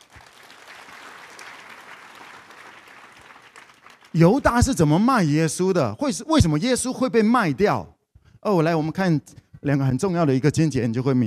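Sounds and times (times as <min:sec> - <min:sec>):
audience clapping: 0:00.0 - 0:04.9
speech: 0:04.2 - 0:11.2.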